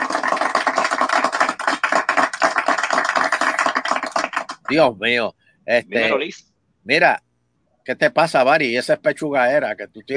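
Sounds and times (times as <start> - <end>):
audience applause: 0.0 - 4.7
speech: 4.7 - 7.2, 7.9 - 10.1.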